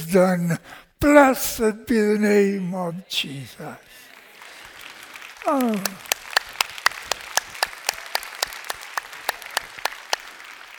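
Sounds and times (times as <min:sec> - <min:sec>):
speech: 0:00.1 - 0:04.0, 0:05.4 - 0:06.1
audience clapping: 0:04.0 - 0:10.7.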